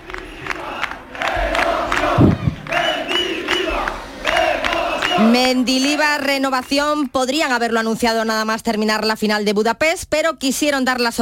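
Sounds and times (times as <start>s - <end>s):
large crowd of football fans chanting the coach's name in unison: 0.0s - 7.0s
speech: 5.2s - 11.2s.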